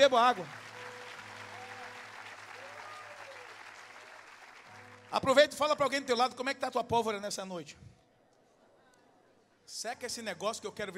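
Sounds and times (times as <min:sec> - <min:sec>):
speech: 0:00.0 - 0:00.6, 0:05.1 - 0:07.9, 0:09.7 - 0:10.9
large crowd applauding: 0:00.0 - 0:05.7.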